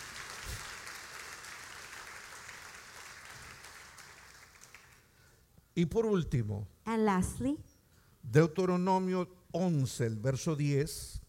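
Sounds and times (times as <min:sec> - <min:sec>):
church congregation applause during a bilingual worship service: 0:00.0 - 0:05.4
speech: 0:05.8 - 0:11.2.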